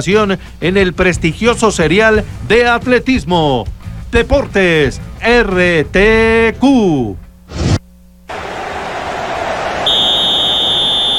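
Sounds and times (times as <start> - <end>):
speech: 0.0 - 7.6
referee whistle blast: 9.8 - 11.1.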